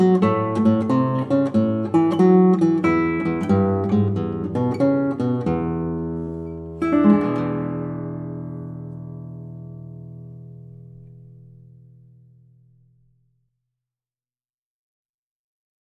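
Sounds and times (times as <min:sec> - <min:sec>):
blues backing guitar: 0:00.0 - 0:11.8.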